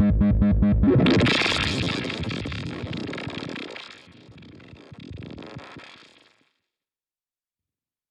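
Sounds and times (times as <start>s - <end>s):
modulated transposed square wave: 0.2s - 6.3s.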